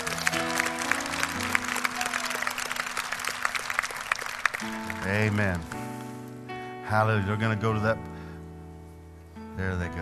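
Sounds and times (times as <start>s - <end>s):
audience clapping for first-time guests: 0.0s - 6.1s
speech: 5.1s - 5.7s, 6.9s - 8.1s, 9.6s - 10.0s.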